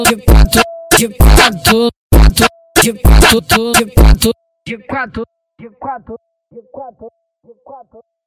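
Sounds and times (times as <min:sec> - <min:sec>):
funk music: 0:00.0 - 0:04.4.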